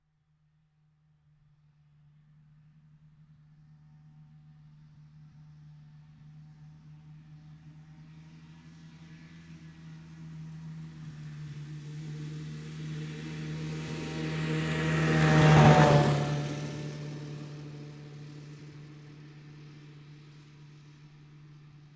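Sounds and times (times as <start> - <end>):
motorbike passing by: 7.1 - 21.9.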